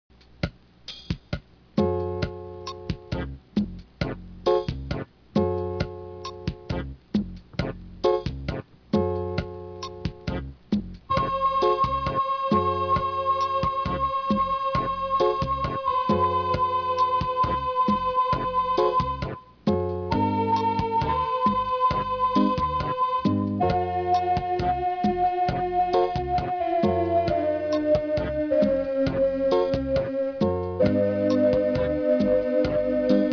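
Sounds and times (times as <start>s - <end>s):
cumbia music: 1.8s - 33.3s.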